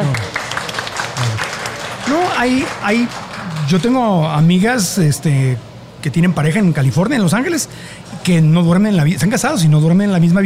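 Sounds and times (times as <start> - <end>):
applause from a group: 0.0 - 4.4
speech: 2.4 - 10.4.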